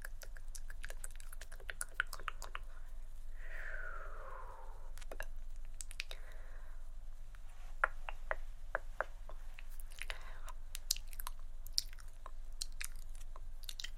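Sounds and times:
tongue clicks: 0:00.0 - 0:02.7, 0:05.0 - 0:06.2, 0:07.8 - 0:13.9
low hum: 0:00.0 - 0:13.6.

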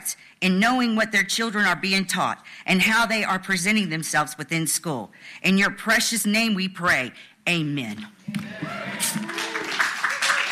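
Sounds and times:
speech: 0:00.1 - 0:09.3
steady crowd hum: 0:08.3 - 0:09.6
audience clapping: 0:08.3 - 0:10.4.

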